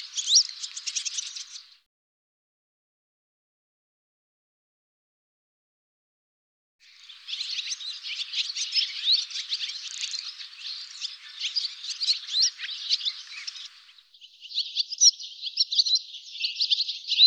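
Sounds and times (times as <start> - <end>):
bird calls high chirps: 0.0 - 1.8, 6.9 - 17.2.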